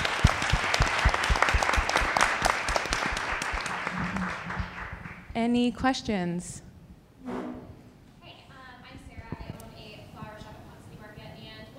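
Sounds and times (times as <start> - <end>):
crowd applauding panelists: 0.0 - 5.3
speech: 5.4 - 6.7.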